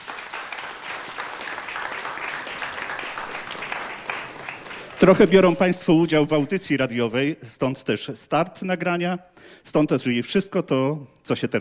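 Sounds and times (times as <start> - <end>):
audience applause: 0.0 - 6.6
speech: 5.0 - 11.5.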